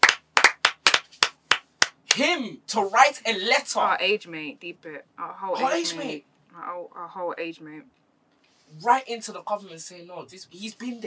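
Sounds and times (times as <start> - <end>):
applause: 0.0 - 2.0
speech: 2.2 - 8.0, 8.7 - 11.0.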